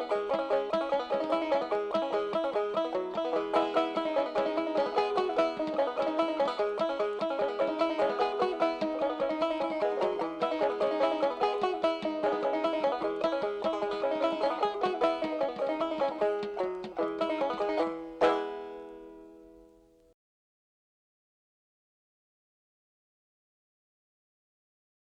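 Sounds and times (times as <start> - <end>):
banging breakdown on clawhammer banjo: 0.0 - 20.0.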